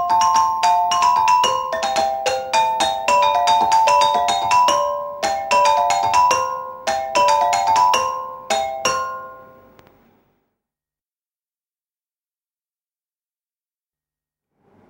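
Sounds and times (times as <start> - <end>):
small bells playing a waltz: 0.0 - 9.7.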